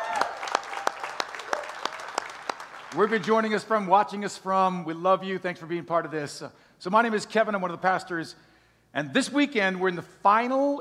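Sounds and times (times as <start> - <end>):
church congregation applauding to welcome online viewers: 0.0 - 3.9
speech: 2.9 - 10.7.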